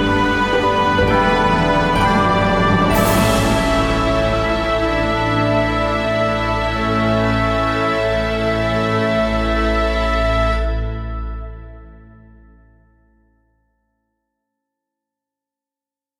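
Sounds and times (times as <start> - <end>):
large orchestra playing: 0.0 - 11.5.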